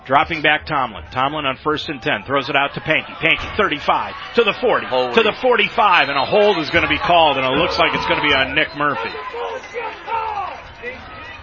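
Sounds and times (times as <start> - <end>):
speech: 0.0 - 9.8
stadium crowd upset over a call: 0.0 - 11.4.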